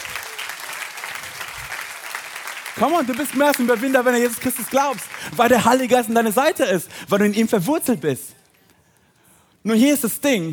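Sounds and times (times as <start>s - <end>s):
church congregation applauding during a sermon: 0.0s - 6.7s
speech: 2.8s - 8.3s, 9.6s - 10.5s.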